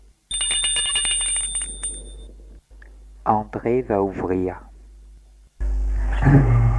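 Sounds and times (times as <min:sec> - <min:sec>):
doorbell ringing: 0:00.3 - 0:02.3
speech: 0:03.3 - 0:04.7, 0:06.2 - 0:06.6.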